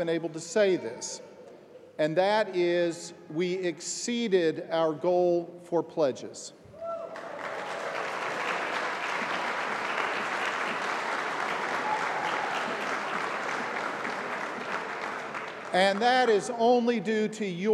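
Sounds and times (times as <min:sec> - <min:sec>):
speech: 0:00.0 - 0:01.3, 0:02.0 - 0:06.6, 0:15.7 - 0:17.7
audience applauding: 0:07.1 - 0:16.6.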